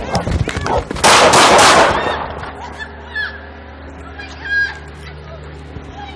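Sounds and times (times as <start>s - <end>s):
low hum: 0.0s - 6.1s
gunshots fired: 1.0s - 2.4s.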